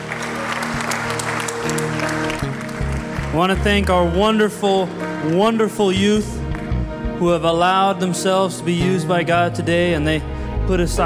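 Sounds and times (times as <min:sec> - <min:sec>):
audience applause: 0:00.0 - 0:03.9
speech: 0:03.3 - 0:06.4, 0:07.2 - 0:11.0.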